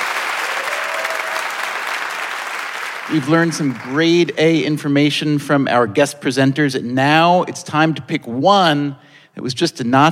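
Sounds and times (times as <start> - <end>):
live audience applauding: 0.0 - 4.4
speech: 3.1 - 10.0.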